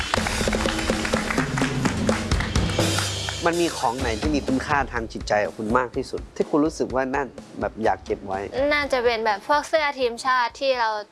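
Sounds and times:
audience applause: 0:00.0 - 0:03.8
speech: 0:03.4 - 0:11.1.

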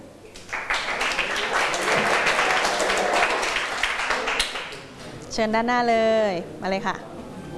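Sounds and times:
classroom applause for a presenting group: 0:00.4 - 0:04.9
speech: 0:05.4 - 0:07.1.

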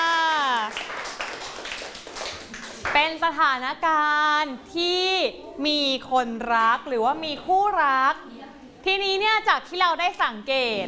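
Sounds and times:
class applauding a group: 0:00.0 - 0:03.1
speech: 0:02.9 - 0:10.8.

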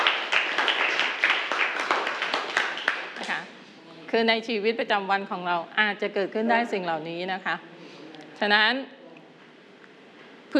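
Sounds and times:
classroom applause for a classmate: 0:00.0 - 0:03.5
speech: 0:04.1 - 0:07.7, 0:08.4 - 0:09.0.

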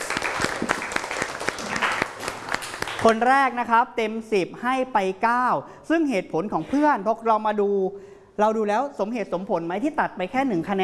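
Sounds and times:
classroom students clapping for a classmate's answer: 0:00.0 - 0:03.2
speech: 0:03.0 - 0:10.8.

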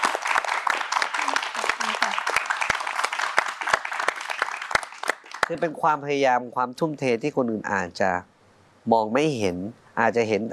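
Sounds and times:
audience applause: 0:00.0 - 0:05.7
speech: 0:05.5 - 0:10.5.

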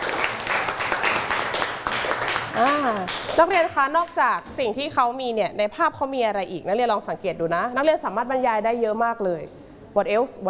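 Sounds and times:
students clapping hands: 0:00.0 - 0:03.6
speech: 0:02.6 - 0:10.4.

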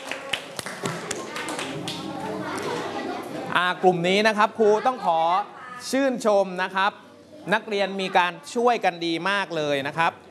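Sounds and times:
students clapping: 0:00.0 - 0:02.2
faint chatter: 0:00.0 - 0:10.2
speech: 0:03.6 - 0:10.2.

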